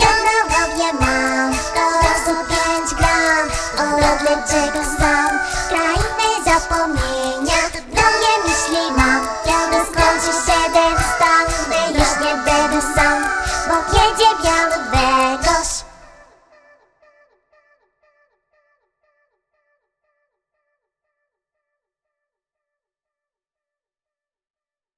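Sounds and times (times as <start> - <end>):
person singing a cappella: 0.0 - 16.8.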